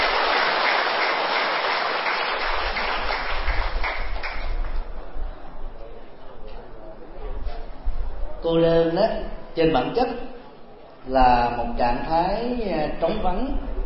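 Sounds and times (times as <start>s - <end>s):
audience applause: 0.0s - 4.8s
speech: 8.5s - 10.3s, 11.1s - 13.7s.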